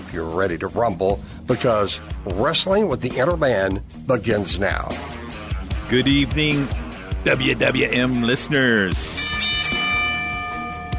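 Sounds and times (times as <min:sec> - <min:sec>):
speech: 0:00.1 - 0:05.2, 0:05.9 - 0:09.2
bell ringing: 0:09.1 - 0:10.9.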